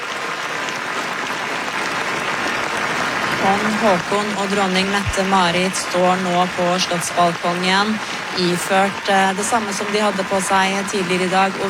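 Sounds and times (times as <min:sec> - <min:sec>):
large outdoor crowd applauding royal couple on palace balcony: 0:00.0 - 0:11.6
speech: 0:03.4 - 0:11.6.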